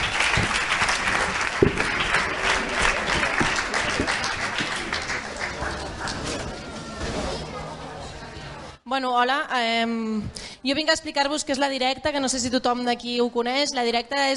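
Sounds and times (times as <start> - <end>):
audience clapping: 0.0 - 6.7
speech: 9.0 - 14.3.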